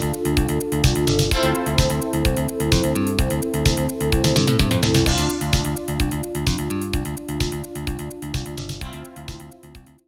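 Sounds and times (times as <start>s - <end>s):
main menu music on AWE32 sound card: 0.0s - 8.0s.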